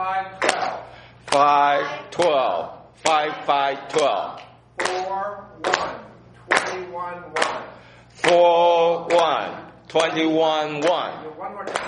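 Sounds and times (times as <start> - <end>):
group clapping hands in rhythm: 0.1 - 11.8
speech: 1.3 - 6.0, 8.2 - 11.8.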